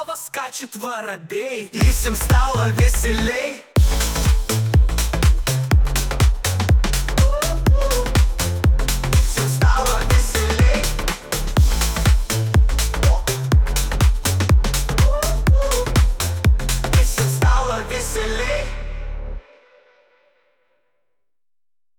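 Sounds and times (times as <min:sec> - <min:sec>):
pop rap: 0:00.0 - 0:19.1
house music: 0:01.8 - 0:19.3.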